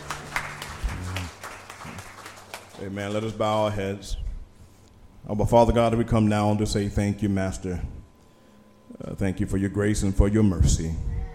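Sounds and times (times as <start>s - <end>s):
scattered hand claps in praise at a church service: 0.0s - 3.3s
speech: 2.8s - 4.2s, 5.2s - 8.0s, 9.0s - 11.1s.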